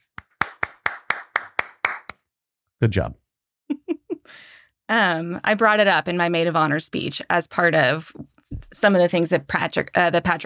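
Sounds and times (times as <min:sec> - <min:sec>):
single person clapping: 0:00.0 - 0:02.2
speech: 0:02.8 - 0:03.2, 0:04.3 - 0:10.4.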